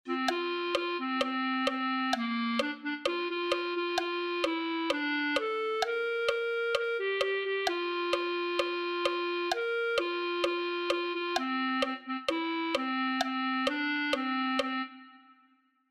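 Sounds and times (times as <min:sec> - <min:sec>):
clarinet: 0:00.1 - 0:15.5.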